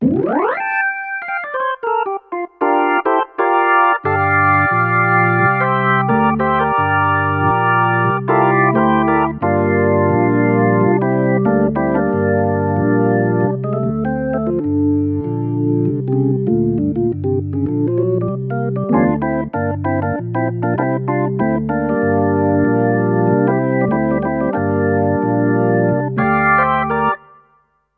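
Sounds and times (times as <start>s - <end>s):
organ: 0.3s - 27.4s.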